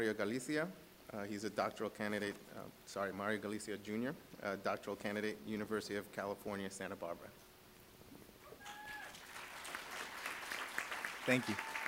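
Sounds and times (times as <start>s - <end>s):
speech: 0.0s - 7.4s, 11.2s - 11.7s
audience applause: 8.6s - 11.8s.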